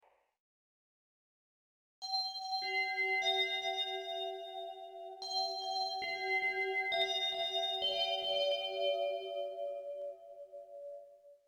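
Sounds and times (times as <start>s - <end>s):
space bells: 2.1s - 11.0s.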